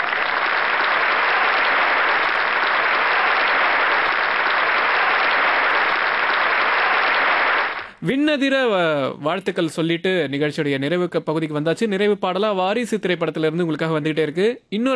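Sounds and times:
audience applause at the close of a show: 0.0 - 8.0
speech: 8.0 - 14.9.

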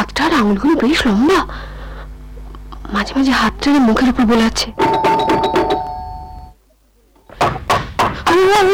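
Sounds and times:
speech: 0.2 - 1.7, 2.9 - 4.9, 8.3 - 8.7
knocking on a door: 4.8 - 5.9.

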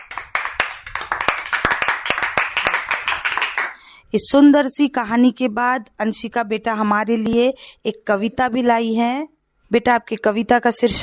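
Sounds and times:
children clapping for a classmate: 0.0 - 3.8
speech: 4.1 - 11.0.

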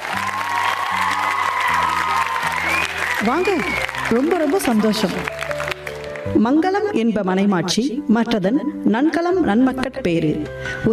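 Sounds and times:
people clapping in welcome: 0.0 - 6.5
speech: 3.2 - 5.4, 6.3 - 10.9.

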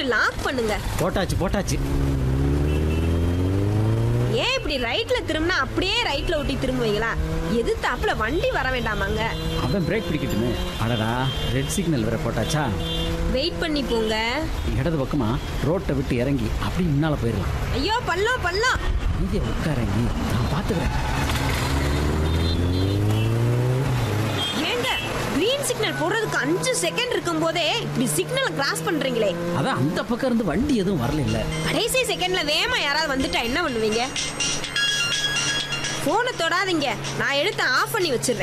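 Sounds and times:
speech: 0.0 - 2.3, 4.3 - 21.4, 25.7 - 34.7, 36.0 - 38.4
vehicle engine revving while pulling away: 0.5 - 15.1, 18.9 - 33.5.

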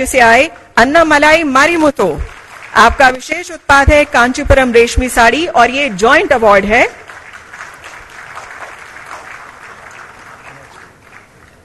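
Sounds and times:
speech: 0.0 - 7.0
audience applause at a national handloom award ceremony: 2.3 - 2.9, 7.0 - 11.6.

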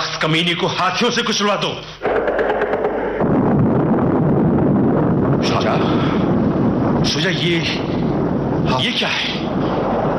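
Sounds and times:
speech: 0.2 - 2.6, 7.0 - 8.0, 8.7 - 9.4
English cannon fire: 2.0 - 10.1.

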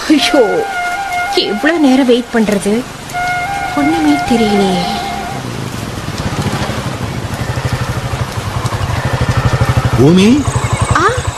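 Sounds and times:
rain falling at night: 0.0 - 11.3
speech: 0.1 - 3.1, 3.8 - 5.0, 10.0 - 10.6.

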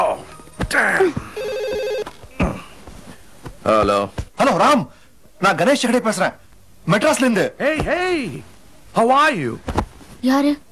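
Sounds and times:
telephone ringing with an electronic trill: 1.4 - 2.1
speech: 3.6 - 10.6.

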